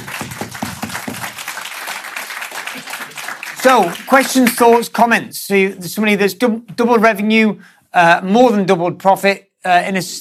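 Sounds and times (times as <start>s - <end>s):
audience applause at a business talk: 0.0s - 4.8s
speech: 3.6s - 10.1s.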